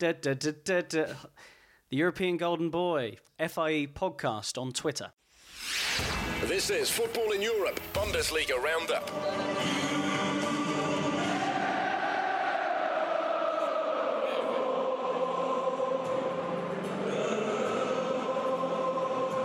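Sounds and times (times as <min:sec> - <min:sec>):
speech: 0:00.0 - 0:10.5
football supporters singing at the Westfalenstadion, home of Borussia Dortmund: 0:08.8 - 0:19.4.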